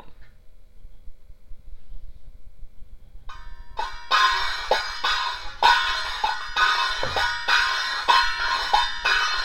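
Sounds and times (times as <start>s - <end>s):
cymbals playing: 3.3s - 9.4s.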